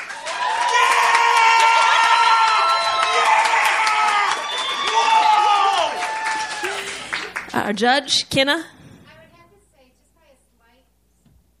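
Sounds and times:
crowd applauding and cheering: 0.0s - 7.6s
high-pitched whoops and shouts: 0.1s - 6.9s
speech: 7.6s - 8.8s.

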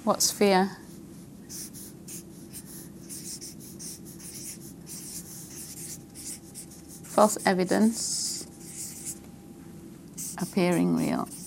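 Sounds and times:
speech: 0.0s - 0.8s, 7.2s - 8.2s, 10.6s - 11.4s
pen scratching across paper writing a note: 1.5s - 9.2s, 10.2s - 11.4s.

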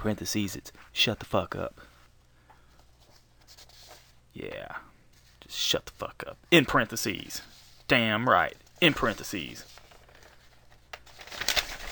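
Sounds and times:
speech: 0.0s - 1.9s, 4.4s - 4.9s, 5.5s - 9.8s
paper rattling next to microphone: 8.6s - 11.9s.

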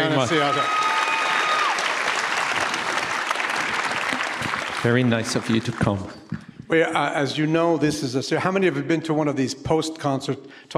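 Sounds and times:
audience applause at a post-concert talk: 0.0s - 6.4s
speech: 0.1s - 0.8s, 4.8s - 10.7s.

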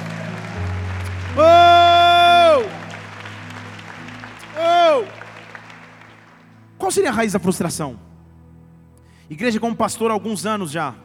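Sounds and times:
audience applause: 0.0s - 6.6s
speech: 6.9s - 8.1s, 9.3s - 11.0s.

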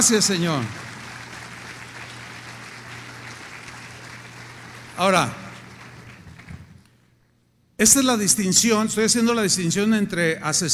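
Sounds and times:
speech: 0.0s - 1.0s, 5.0s - 5.4s, 7.8s - 10.7s
audience applauding: 0.0s - 6.9s.

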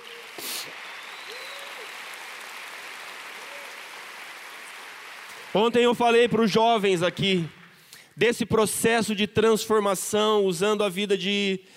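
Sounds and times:
faint tonal whoops: 0.0s - 2.1s, 3.3s - 3.9s
audience applause: 0.0s - 7.6s
speech: 5.5s - 7.6s, 8.2s - 11.7s.

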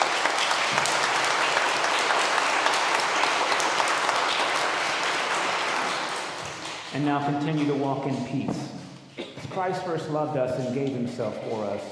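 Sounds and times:
audience clapping: 0.0s - 8.4s
speech: 7.0s - 8.8s, 9.6s - 11.9s.

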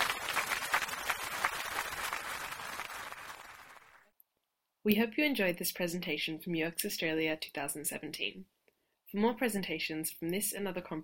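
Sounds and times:
audience applause: 0.0s - 4.1s
speech: 4.8s - 8.5s, 9.1s - 11.0s.

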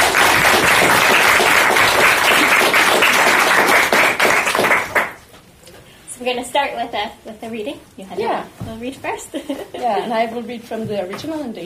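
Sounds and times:
audience applause: 0.0s - 5.2s
speech: 6.5s - 11.6s.

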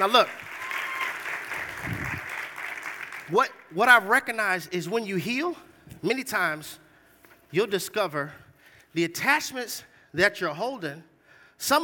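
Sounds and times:
speech: 0.0s - 0.4s, 3.3s - 6.8s, 7.5s - 8.4s, 9.0s - 11.8s
audience clapping: 0.0s - 3.7s.

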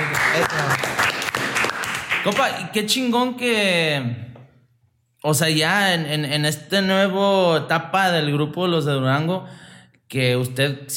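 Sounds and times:
crowd applause: 0.0s - 2.4s
speech: 0.4s - 0.9s, 2.2s - 4.2s, 5.2s - 10.9s.

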